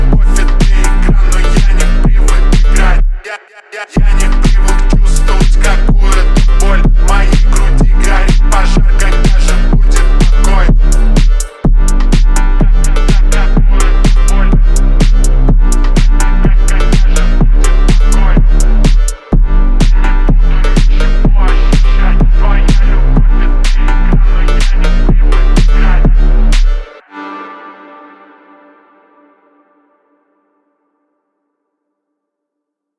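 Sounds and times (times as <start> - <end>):
33-37 Hz low bass tone: 0.0 - 3.2, 4.0 - 27.0.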